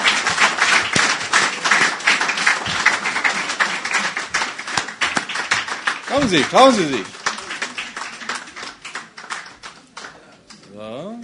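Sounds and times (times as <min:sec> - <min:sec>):
crowd applause: 0:00.0 - 0:10.7
speech: 0:06.2 - 0:07.2.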